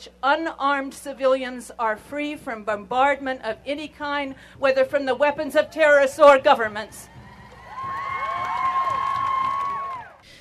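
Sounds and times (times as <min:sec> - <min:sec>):
speech: 0:00.0 - 0:07.1
demonstration crowd cheering and whooping: 0:07.1 - 0:10.2.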